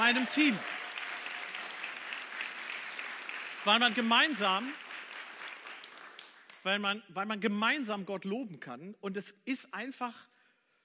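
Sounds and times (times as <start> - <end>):
audience applause: 0.0 - 6.6
speech: 0.1 - 0.8, 3.6 - 4.8, 6.6 - 10.3.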